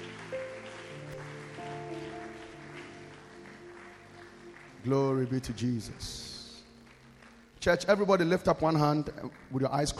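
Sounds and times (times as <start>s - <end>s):
audience applause: 0.0s - 7.6s
organ chords: 0.0s - 9.9s
speech: 4.8s - 6.3s, 7.6s - 9.9s.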